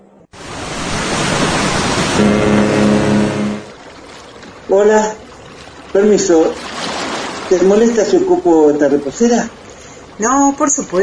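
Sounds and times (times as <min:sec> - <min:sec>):
broadband rushing noise aboard a cruise ship on the Atlantic Ocean: 0:00.4 - 0:03.8
speech: 0:02.2 - 0:02.6, 0:04.7 - 0:05.2, 0:05.9 - 0:06.7, 0:07.5 - 0:09.6, 0:10.2 - 0:11.0
low droning hum aboard a cruise ship on the Atlantic Ocean: 0:02.2 - 0:04.6.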